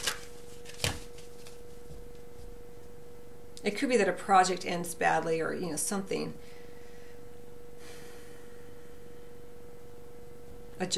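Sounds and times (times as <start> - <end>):
card shuffled and drawn from a Money Tarot deck: 0.0 - 1.8
speech: 3.6 - 6.6, 10.8 - 10.9.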